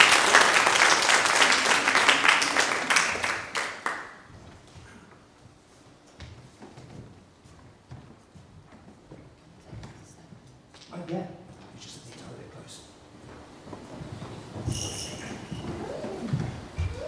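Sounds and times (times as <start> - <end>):
audience applause: 0.0 - 4.2.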